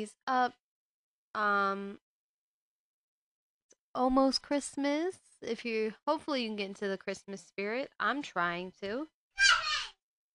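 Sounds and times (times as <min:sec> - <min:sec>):
speech: 0:00.0 - 0:00.6, 0:01.3 - 0:02.0, 0:04.0 - 0:09.2
young child yelling: 0:09.4 - 0:10.0.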